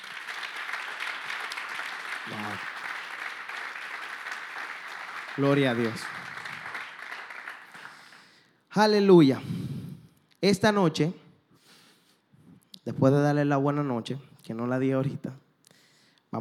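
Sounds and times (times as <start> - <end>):
audience applauding: 0.0 - 8.4
speech: 2.3 - 2.7, 5.4 - 6.2, 8.8 - 9.6, 10.4 - 11.2, 12.8 - 15.4.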